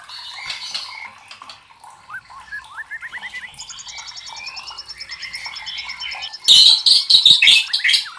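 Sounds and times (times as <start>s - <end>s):
white-rumped shama song: 2.1s - 6.5s, 7.4s - 8.1s.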